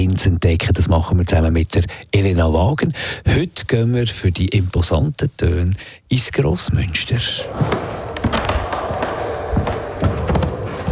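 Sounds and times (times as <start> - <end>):
hiss: 0.0 - 10.9
speech: 0.1 - 8.0
old wooden floorboards creaking in church organ loft: 7.4 - 10.9.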